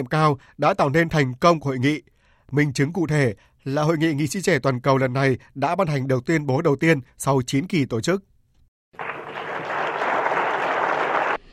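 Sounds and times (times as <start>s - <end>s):
speech: 0.0s - 8.3s
delegates' applause in a conference hall: 9.0s - 11.5s.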